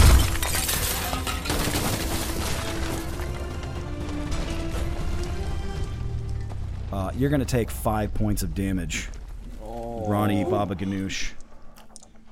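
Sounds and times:
glass shattering: 0:00.0 - 0:03.4
back of the house exploding: 0:00.0 - 0:09.5
speech: 0:07.1 - 0:09.2, 0:10.1 - 0:11.4.

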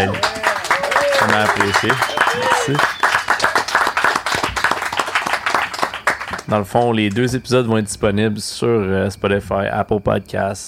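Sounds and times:
speech: 0:00.0 - 0:00.3, 0:01.2 - 0:03.0, 0:06.5 - 0:10.6
live audience applauding: 0:00.0 - 0:07.2.

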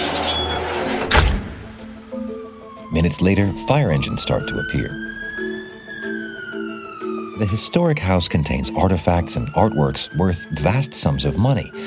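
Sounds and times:
heavy metal gate swinging open: 0:00.0 - 0:01.7
speech: 0:02.9 - 0:05.1, 0:07.4 - 0:11.8.

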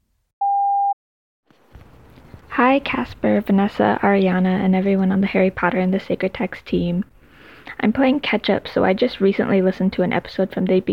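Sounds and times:
voicemail beep: 0:00.4 - 0:01.0
speech: 0:02.6 - 0:07.1, 0:07.7 - 0:10.9.

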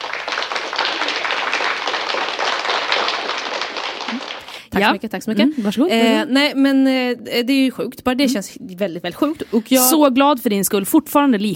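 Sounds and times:
applause sound effect: 0:00.0 - 0:04.8
speech: 0:04.8 - 0:11.5.

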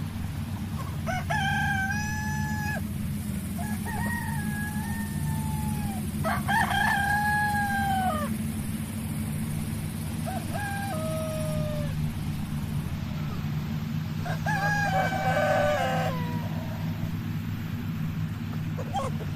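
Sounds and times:
farm animals: 0:00.0 - 0:19.3.

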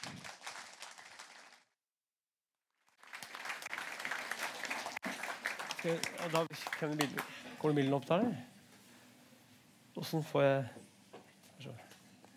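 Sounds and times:
audience applause: 0:00.0 - 0:01.7, 0:02.9 - 0:07.6
speech: 0:05.8 - 0:08.5, 0:10.0 - 0:10.8, 0:11.6 - 0:11.9.

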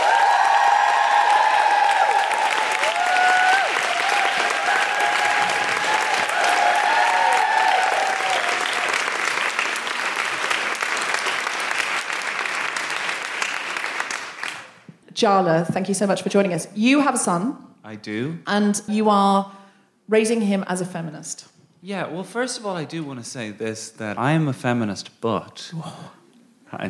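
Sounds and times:
audience whooping and calling excitedly: 0:00.0 - 0:09.0
audience applauding a guest's arrival: 0:00.0 - 0:14.9
speech: 0:15.2 - 0:26.8.

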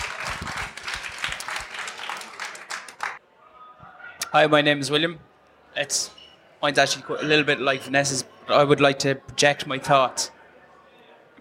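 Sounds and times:
audience applause: 0:00.0 - 0:03.2
speech: 0:04.3 - 0:10.4.

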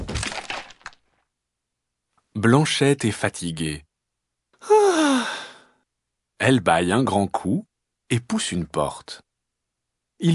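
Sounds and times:
small wooden chair falling and breaking: 0:00.0 - 0:01.0
speech: 0:02.4 - 0:03.9, 0:06.4 - 0:09.2, 0:10.2 - 0:10.3.

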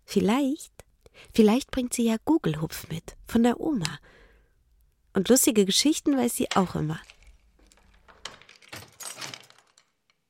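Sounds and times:
speech: 0:00.1 - 0:04.2, 0:05.2 - 0:07.2
keys jangling and scraping in an apartment door lock: 0:06.1 - 0:10.0.

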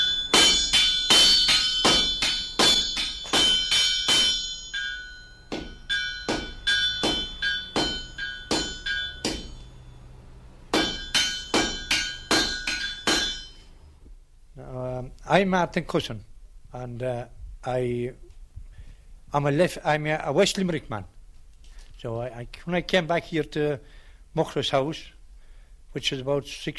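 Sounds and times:
sledgehammer drawing out quarter by half iron on anvil: 0:00.0 - 0:13.7
speech: 0:15.3 - 0:18.2, 0:19.3 - 0:21.1, 0:22.0 - 0:25.2, 0:26.0 - 0:26.7.

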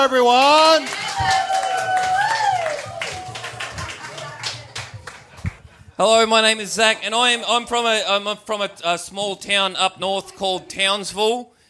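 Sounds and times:
speech: 0:00.0 - 0:01.6, 0:06.0 - 0:11.6
audience applause welcoming an act to the stage: 0:00.0 - 0:05.8.

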